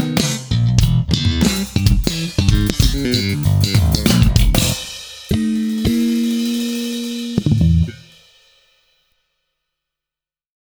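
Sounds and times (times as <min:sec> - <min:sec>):
slap electric bass: 0:00.0 - 0:06.0, 0:07.3 - 0:08.0.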